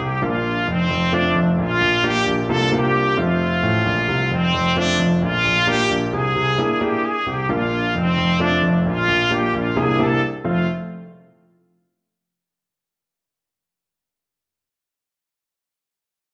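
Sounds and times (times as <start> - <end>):
trumpet: 0.0 - 11.5.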